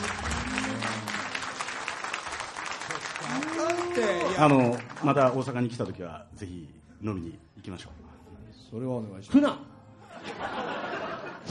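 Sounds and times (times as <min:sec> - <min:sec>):
faint clapping in a radio studio: 0:00.0 - 0:05.9
speech: 0:04.0 - 0:08.1, 0:08.7 - 0:09.7
laughter: 0:10.0 - 0:11.5.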